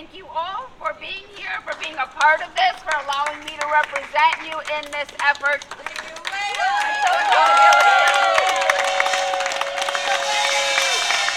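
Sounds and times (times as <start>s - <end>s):
speech: 0.2s - 8.7s
crowd clapping: 1.4s - 11.3s
crowd cheering and whooping: 6.4s - 11.3s.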